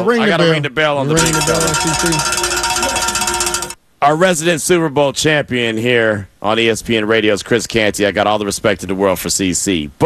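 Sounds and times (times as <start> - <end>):
speech: 0.0 - 2.5, 4.0 - 10.0
bell ringing: 1.1 - 3.8.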